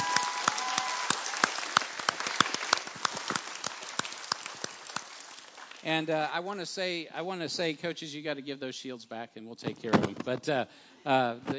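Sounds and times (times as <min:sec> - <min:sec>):
crowd applauding: 0:00.0 - 0:06.0
speech: 0:05.8 - 0:11.5.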